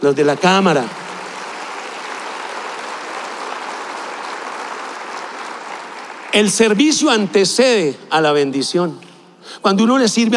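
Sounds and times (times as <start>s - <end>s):
speech: 0.0s - 1.0s, 6.3s - 10.3s
applause: 0.0s - 7.8s.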